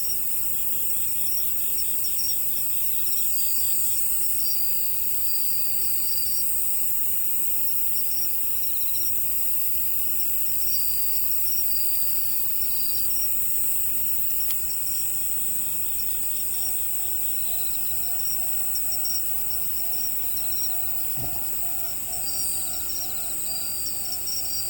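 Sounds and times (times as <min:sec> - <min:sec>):
crickets trilling: 0:00.3 - 0:24.6
brief knock: 0:21.1 - 0:21.8.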